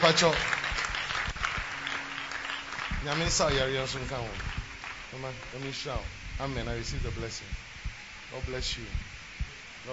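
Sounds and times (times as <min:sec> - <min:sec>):
audience clapping: 0:00.0 - 0:05.9
speech: 0:00.1 - 0:00.6, 0:03.0 - 0:07.6, 0:08.3 - 0:09.1.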